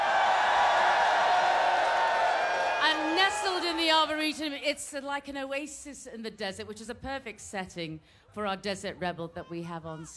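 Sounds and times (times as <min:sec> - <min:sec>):
festival crowd cheering: 0:00.0 - 0:04.4
speech: 0:03.9 - 0:10.1.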